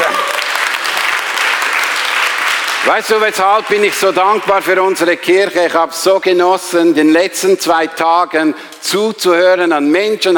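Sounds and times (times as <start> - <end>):
audience applause: 0.0 - 4.9
speech: 2.9 - 10.3.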